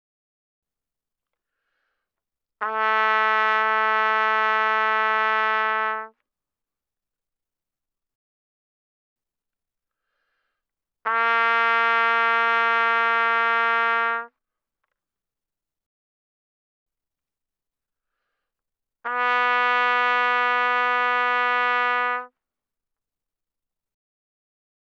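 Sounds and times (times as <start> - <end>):
trumpet without vibrato mezzo-forte E3 to B3: 2.6 - 6.2, 11.0 - 14.3, 19.0 - 22.3.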